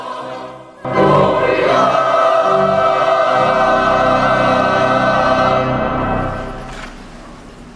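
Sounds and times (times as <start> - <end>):
fanfare: 0.8 - 6.9.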